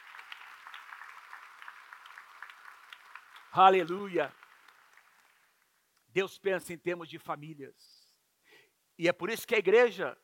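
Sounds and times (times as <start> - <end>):
audience applauding: 0.0 - 5.8
speech: 3.5 - 4.4, 6.2 - 8.0, 9.0 - 10.2.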